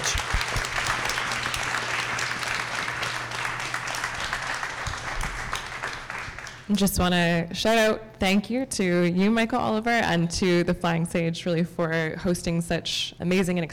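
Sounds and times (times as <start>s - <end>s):
audience applause: 0.0s - 6.7s
speech: 6.7s - 13.7s.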